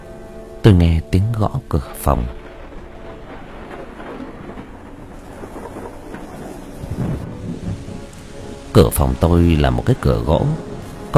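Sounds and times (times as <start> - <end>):
heavy rain: 0.0 - 11.1
speech: 0.6 - 2.4, 8.8 - 11.1
howling wind: 2.3 - 11.1.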